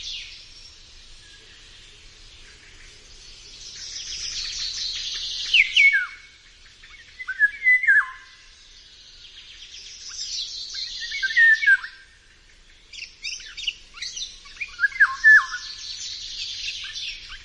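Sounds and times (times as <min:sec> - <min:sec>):
dense chorus of high chirping birds: 0:00.0 - 0:17.4
Eurasian golden oriole fluted whistled song: 0:07.2 - 0:08.2, 0:10.9 - 0:12.0, 0:14.6 - 0:15.8.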